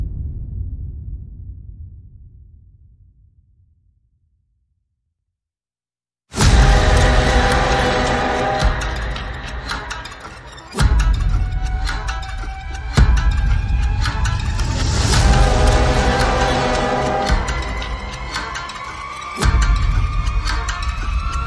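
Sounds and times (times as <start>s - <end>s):
horror music: 6.4s - 21.4s.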